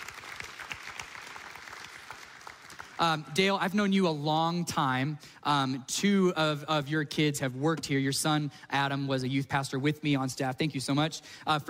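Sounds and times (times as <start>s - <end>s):
audience applause: 0.0s - 3.0s
speech: 3.0s - 11.6s.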